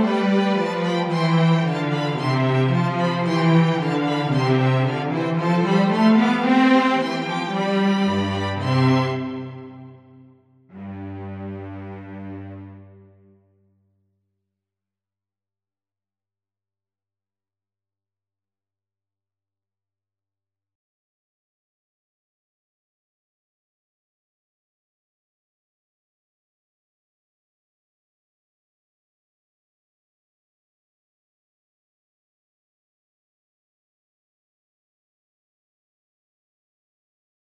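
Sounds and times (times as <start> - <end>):
instrumental music: 0.0 - 13.5.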